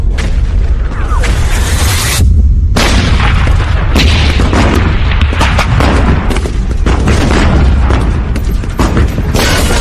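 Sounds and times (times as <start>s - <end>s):
low rumble: 0.0s - 9.0s
field artillery firing: 2.6s - 9.7s.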